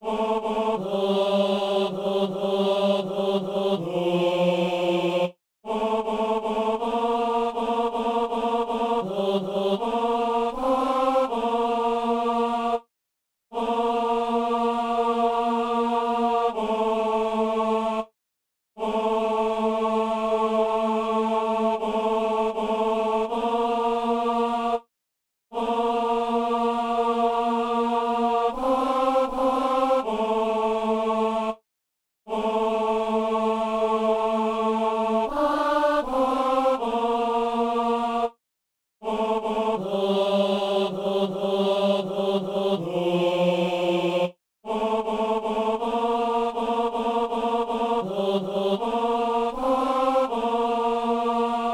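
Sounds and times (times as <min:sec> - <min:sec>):
tenor singing a psalm: 0:00.0 - 0:12.9, 0:13.6 - 0:18.1, 0:18.8 - 0:24.9, 0:25.6 - 0:31.6, 0:32.3 - 0:38.4, 0:39.0 - 0:51.7.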